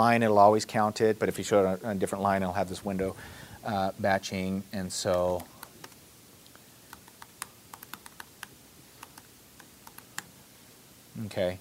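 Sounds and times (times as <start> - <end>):
speech: 0.0 - 5.5, 11.2 - 11.6
typing on a computer keyboard: 6.9 - 10.3.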